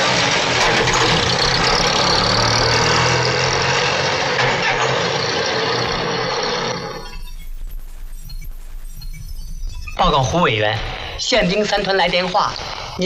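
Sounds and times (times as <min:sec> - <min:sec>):
car engine running: 0:00.0 - 0:09.8
speech: 0:10.1 - 0:13.0.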